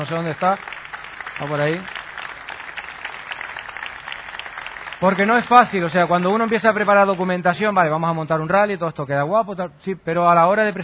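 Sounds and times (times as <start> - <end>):
speech: 0.0 - 0.8, 1.4 - 2.0, 5.0 - 10.8
audience applause: 0.0 - 7.3.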